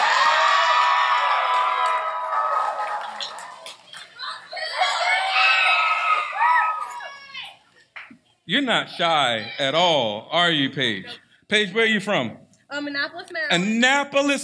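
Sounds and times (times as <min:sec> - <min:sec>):
crowd cheering and screaming: 0:00.0 - 0:07.6
speech: 0:08.5 - 0:14.4.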